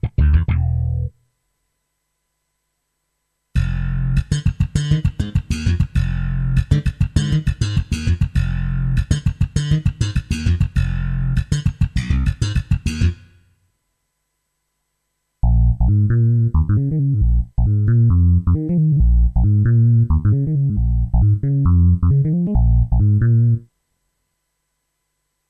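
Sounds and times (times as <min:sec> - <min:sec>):
solo bass: 0:00.0 - 0:01.2, 0:03.6 - 0:13.2, 0:15.4 - 0:23.7.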